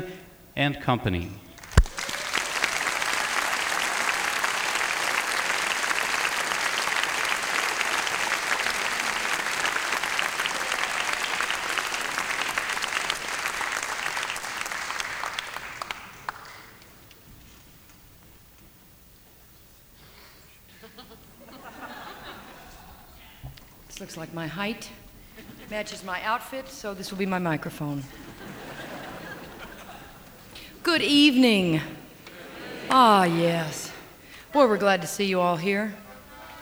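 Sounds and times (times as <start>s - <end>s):
speech: 0.0s - 1.4s, 24.2s - 25.0s, 25.7s - 28.3s, 30.9s - 32.0s, 32.9s - 33.8s, 34.5s - 36.0s
crowd applauding a swing music performer at a Swing Week concert: 1.6s - 17.2s, 28.2s - 34.7s, 36.1s - 36.6s
laughter: 20.7s - 23.3s, 25.2s - 26.2s, 27.8s - 34.8s, 36.0s - 36.6s.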